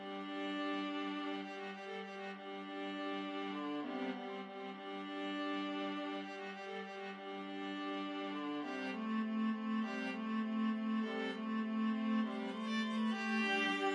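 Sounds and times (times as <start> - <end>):
viola duet: 0.1 - 13.9.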